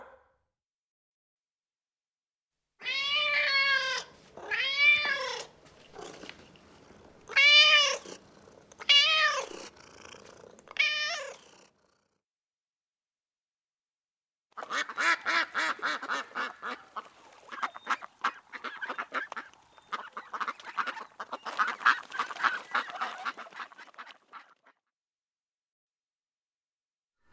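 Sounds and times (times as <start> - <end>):
animal sounds: 2.9 - 11.8, 14.6 - 24.8.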